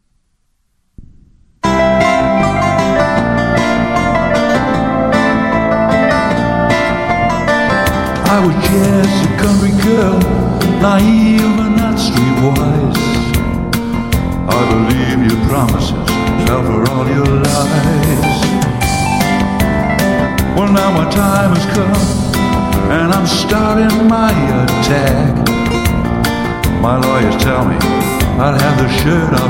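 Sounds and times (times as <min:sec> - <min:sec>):
country music: 0:01.6 - 0:29.4.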